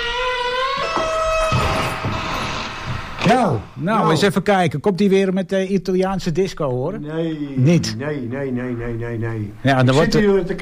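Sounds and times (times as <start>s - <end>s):
stiff door being unlocked and creaking open with a high squeal: 0.0s - 3.5s
speech: 3.2s - 10.6s.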